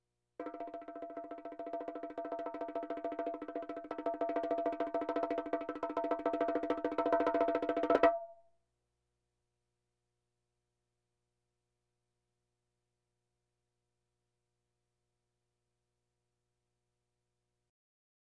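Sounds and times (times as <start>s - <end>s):
bongos: 0.4s - 8.4s.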